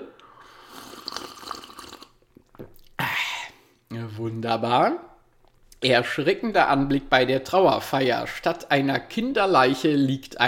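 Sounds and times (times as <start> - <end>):
drink being poured into a cup: 0.6 - 2.8
speech: 3.9 - 5.1, 5.8 - 10.4.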